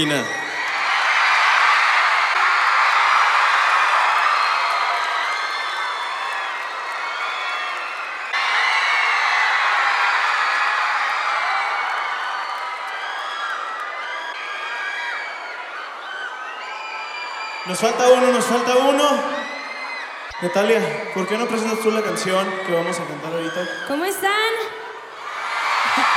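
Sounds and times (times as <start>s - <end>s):
speech: 0.0s - 0.4s, 17.7s - 19.4s, 20.4s - 24.8s
crowd applause: 0.0s - 26.1s.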